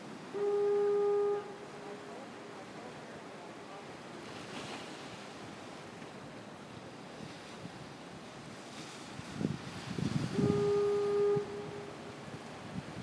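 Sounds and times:
waves crashing: 0:00.0 - 0:13.0
wind gusts: 0:00.0 - 0:13.0
foghorn blasts at Marshall Point Lighthouse: 0:00.3 - 0:02.7, 0:10.2 - 0:12.3
people visiting the lighthouse talking: 0:01.8 - 0:04.4.

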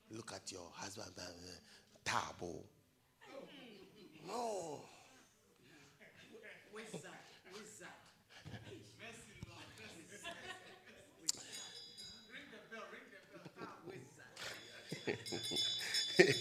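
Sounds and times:
speech: 0:00.5 - 0:03.6, 0:04.2 - 0:04.9, 0:15.1 - 0:16.3
laughter: 0:08.4 - 0:12.1, 0:13.2 - 0:16.3
bell ringing faintly: 0:11.3 - 0:13.1, 0:14.3 - 0:16.3.

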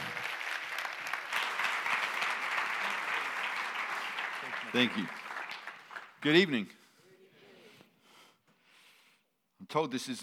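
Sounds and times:
crowd applauding: 0:00.0 - 0:06.6
speech: 0:04.7 - 0:05.2, 0:06.2 - 0:06.8, 0:09.7 - 0:10.2.

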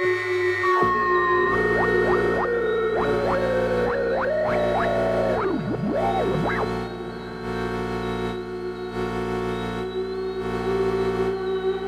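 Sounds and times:
bright synth tones sweeping: 0:00.1 - 0:11.8
rhythmic pulsing: 0:00.8 - 0:11.8
steady low drone: 0:00.8 - 0:11.8.

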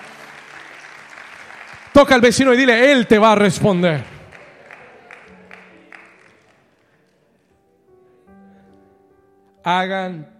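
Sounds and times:
audience hand clapping: 0:00.0 - 0:07.4
speech: 0:02.0 - 0:04.1, 0:09.6 - 0:10.3.

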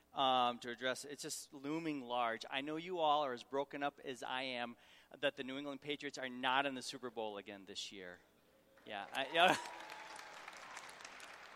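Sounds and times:
speech: 0:00.2 - 0:09.8
audience cheering and applause: 0:09.1 - 0:11.5.

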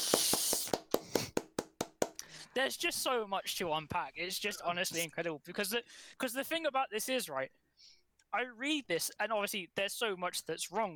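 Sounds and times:
hands clapping: 0:00.0 - 0:02.2
speech: 0:02.6 - 0:07.6, 0:08.3 - 0:10.9.

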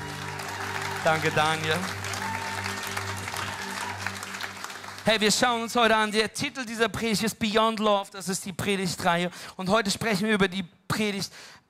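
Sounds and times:
audience applause: 0:00.0 - 0:06.2
speech: 0:01.0 - 0:02.0, 0:05.0 - 0:11.6.

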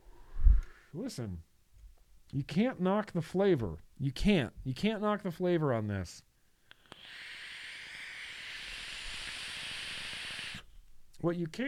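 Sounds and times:
speech: 0:00.9 - 0:01.5, 0:02.3 - 0:06.3, 0:11.2 - 0:11.6
whistling airflow from a vaping device: 0:06.7 - 0:10.7.

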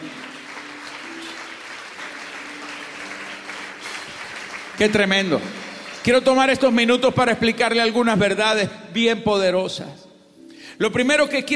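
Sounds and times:
audience applauding: 0:00.0 - 0:07.1
speech: 0:04.8 - 0:10.0, 0:10.8 - 0:11.5.

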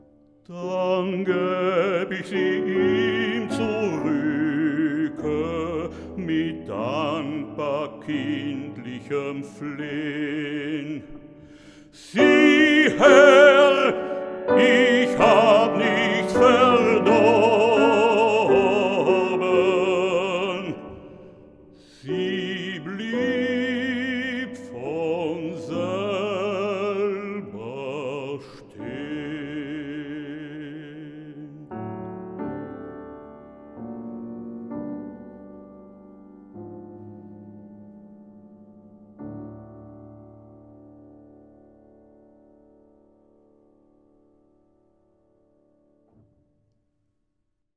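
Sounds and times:
person singing: 0:00.0 - 0:32.2
piano accompaniment: 0:00.0 - 0:46.4
speech: 0:00.5 - 0:04.2, 0:06.2 - 0:11.2, 0:12.0 - 0:14.0.

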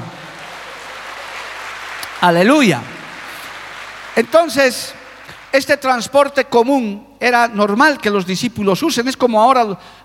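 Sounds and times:
audience applause: 0:00.0 - 0:06.1
speech: 0:02.2 - 0:02.9, 0:04.2 - 0:10.0.

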